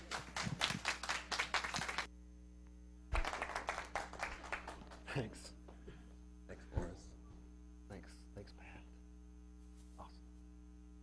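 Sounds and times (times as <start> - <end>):
audience clapping welcoming a speaker at an event in Slidell: 0.0 - 2.1, 3.1 - 5.2
speech: 5.2 - 5.6.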